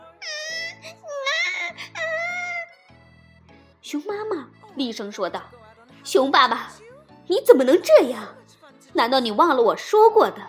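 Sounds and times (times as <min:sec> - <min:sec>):
baby crying: 0:00.0 - 0:03.0
speech: 0:03.9 - 0:10.4.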